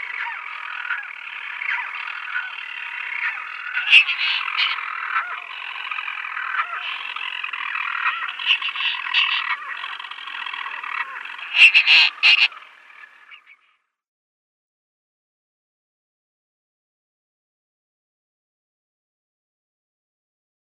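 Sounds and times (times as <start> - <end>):
European storm petrel purring call: 0.0 - 13.8.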